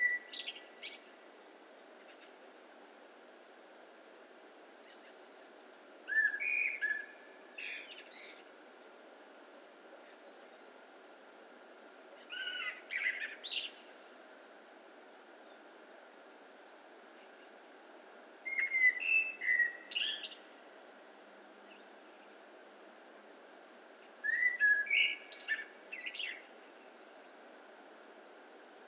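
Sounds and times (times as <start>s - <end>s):
Eurasian blackbird song: 0.0s - 1.3s, 6.1s - 9.0s, 12.2s - 14.2s, 18.5s - 20.5s, 24.0s - 27.7s
steady background hiss: 0.0s - 28.8s.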